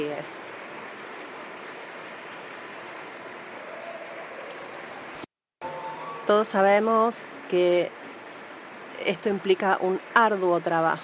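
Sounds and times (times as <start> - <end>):
speech: 0.0 - 0.5, 6.3 - 8.1, 9.0 - 11.0
audience applause: 3.1 - 5.2.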